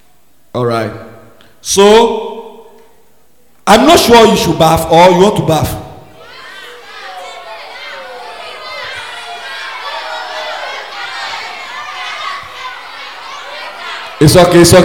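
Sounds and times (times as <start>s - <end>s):
speech: 0.6s - 2.3s, 3.7s - 5.8s, 14.2s - 14.8s
crowd of children shouting and chattering: 6.0s - 14.8s.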